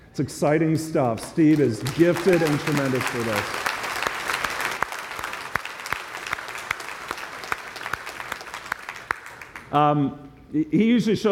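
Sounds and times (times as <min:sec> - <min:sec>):
speech: 0:00.2 - 0:03.7, 0:09.7 - 0:11.2
audience clapping: 0:01.0 - 0:09.7.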